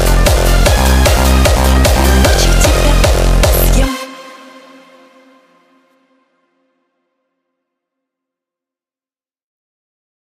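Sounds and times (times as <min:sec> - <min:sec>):
hardstyle music: 0:00.0 - 0:06.6.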